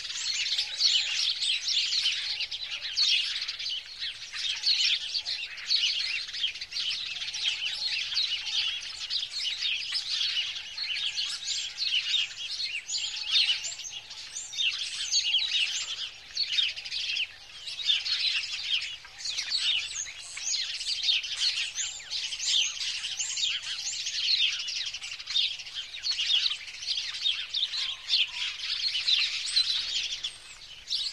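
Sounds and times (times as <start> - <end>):
bird chirping: 0.0 - 31.1.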